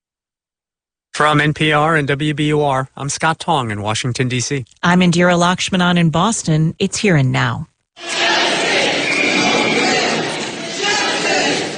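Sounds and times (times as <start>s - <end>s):
speech: 1.2s - 8.2s
large crowd shouting together at a protest: 8.0s - 11.7s.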